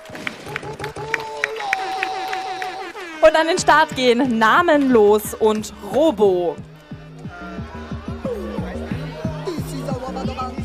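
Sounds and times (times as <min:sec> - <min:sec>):
applause: 0:00.0 - 0:03.2
laughter: 0:00.0 - 0:03.5, 0:07.0 - 0:10.6
speech: 0:03.2 - 0:06.7.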